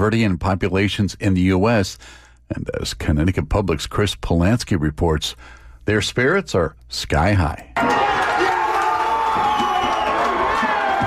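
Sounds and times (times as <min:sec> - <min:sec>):
speech: 0:00.0 - 0:08.0
crowd of fans cheering: 0:07.8 - 0:11.0.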